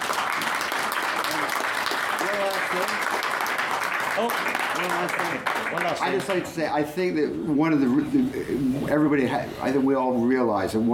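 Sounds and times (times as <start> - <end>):
audience round of applause: 0.0 - 6.5
speech: 4.2 - 10.9.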